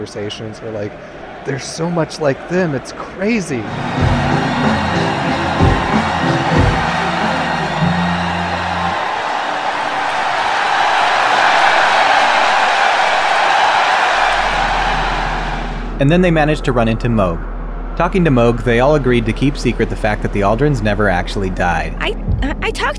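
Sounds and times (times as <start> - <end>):
speech: 0.0 - 5.7, 16.0 - 22.9
audience applause: 0.0 - 15.8
crowd cheering with whoops and yells: 0.0 - 17.4, 18.0 - 22.0.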